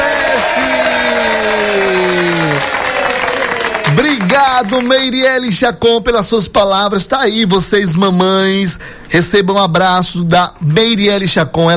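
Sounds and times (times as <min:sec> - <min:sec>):
audience applause: 0:00.0 - 0:05.1
speech: 0:04.4 - 0:11.7.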